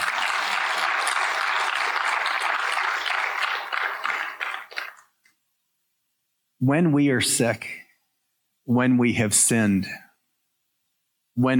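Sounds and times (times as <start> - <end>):
crowd clapping: 0.0 - 5.2
speech: 6.6 - 7.8, 8.7 - 10.0, 11.4 - 11.5.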